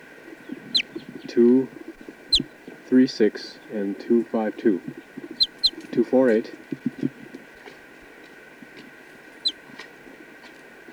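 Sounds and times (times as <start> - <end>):
test bird chirping and squawking: 0.3 - 2.7, 5.0 - 5.9
speech: 1.3 - 1.8, 2.9 - 5.0, 6.0 - 6.9.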